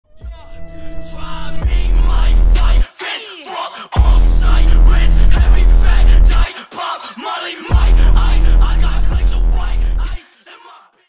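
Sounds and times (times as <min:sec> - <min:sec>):
boosted bass: 0:00.1 - 0:02.8, 0:04.0 - 0:06.5, 0:07.7 - 0:10.2.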